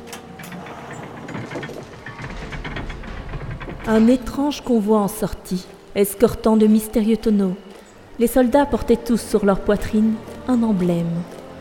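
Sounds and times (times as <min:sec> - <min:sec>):
large gates grinding open: 0:00.0 - 0:07.1
speech: 0:03.9 - 0:07.6, 0:08.2 - 0:11.4.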